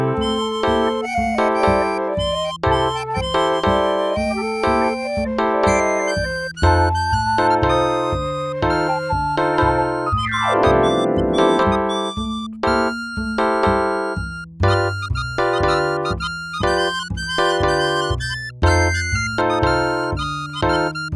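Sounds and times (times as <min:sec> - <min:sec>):
MIDI blues music: 0:00.1 - 0:21.1.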